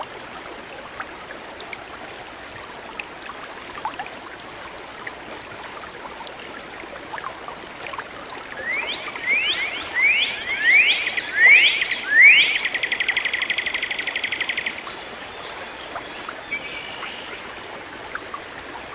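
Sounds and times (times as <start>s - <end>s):
songbird singing: 8.6s - 17.7s.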